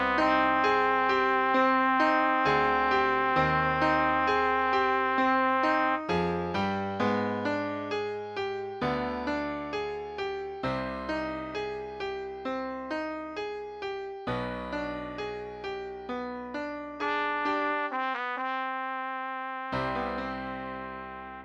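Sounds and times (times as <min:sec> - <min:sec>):
trumpet playing a meditation piece: 0:00.0 - 0:06.7, 0:17.0 - 0:21.4
piano accompanying trumpet: 0:00.0 - 0:21.4.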